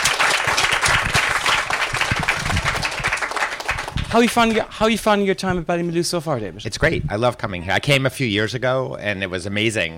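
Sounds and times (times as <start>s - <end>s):
audience applause: 0.0s - 4.6s
speech: 4.1s - 9.9s.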